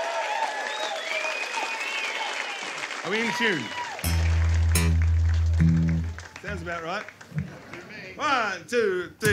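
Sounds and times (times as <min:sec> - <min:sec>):
faint whistles and cheers: 0:00.0 - 0:04.2
audience applause: 0:00.0 - 0:08.2
speech: 0:03.0 - 0:04.2, 0:06.5 - 0:07.4, 0:08.2 - 0:09.3.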